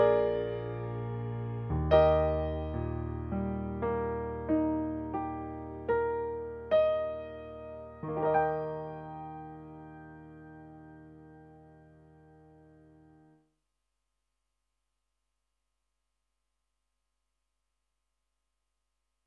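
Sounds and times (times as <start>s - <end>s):
piano: 0.0s - 13.5s.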